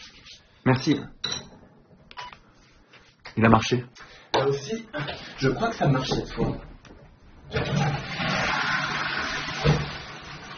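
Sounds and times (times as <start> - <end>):
speech: 0.7 - 1.2, 3.4 - 6.7
toilet flushing after repair: 5.0 - 6.5, 7.4 - 10.5.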